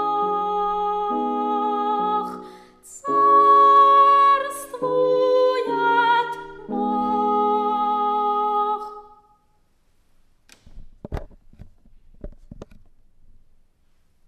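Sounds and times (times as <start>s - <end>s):
soprano singing: 0.0s - 9.3s.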